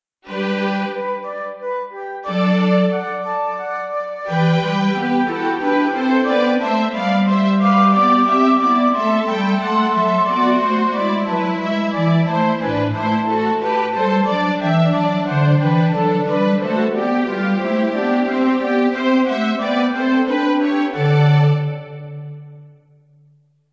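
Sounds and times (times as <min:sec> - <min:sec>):
instrumental music: 0:00.2 - 0:23.7.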